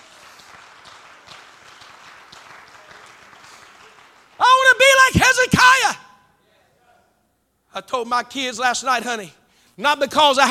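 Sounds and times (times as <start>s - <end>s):
crowd clapping: 0.0s - 4.9s
speech: 5.3s - 6.0s, 7.8s - 10.4s.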